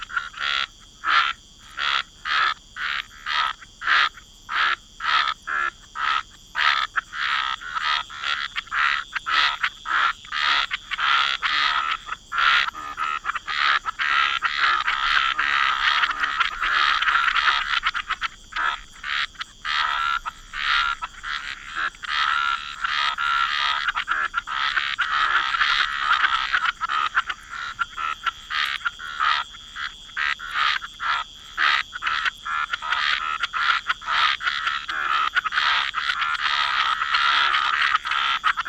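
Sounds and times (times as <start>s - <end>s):
night forest ambience: 0.0s - 38.6s.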